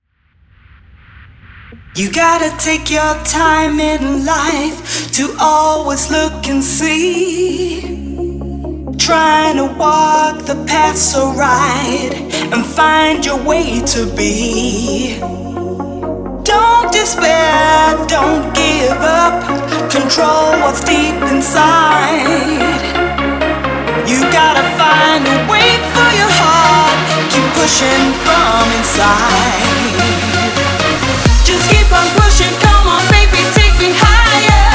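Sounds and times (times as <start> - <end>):
radio music mix: 0.4 - 34.7.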